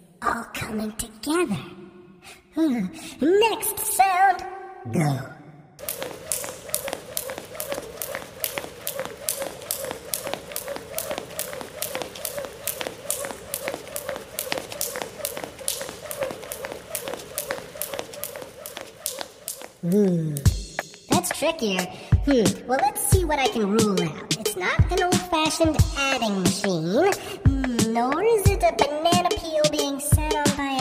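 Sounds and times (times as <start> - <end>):
speech: 0.3 - 5.3, 21.5 - 30.7
jump rope hitting the ground: 5.8 - 20.8.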